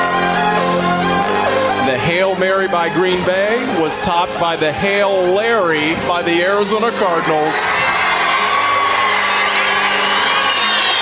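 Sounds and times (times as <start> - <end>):
huge stadium crowd cheering: 0.0 - 11.0
speech: 2.2 - 8.0
sharp yells: 6.9 - 11.0.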